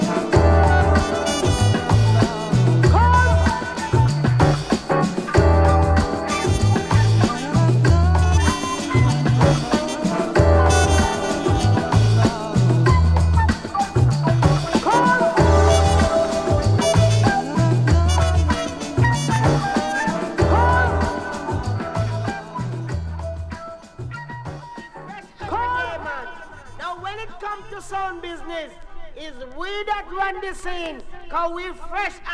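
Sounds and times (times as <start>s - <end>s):
'90s UK jazzy trip-hop: 0.0s - 25.7s.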